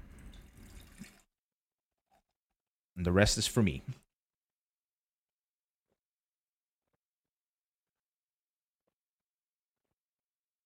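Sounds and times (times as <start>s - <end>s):
lemon-flavoured Meridian Hive seltzer pouring: 0.0s - 1.3s
speech: 3.0s - 4.0s.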